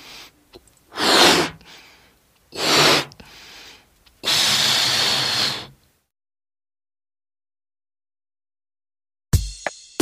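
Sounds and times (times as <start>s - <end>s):
person blowing up a balloon: 0.9s - 1.7s, 2.5s - 3.2s, 4.2s - 5.8s.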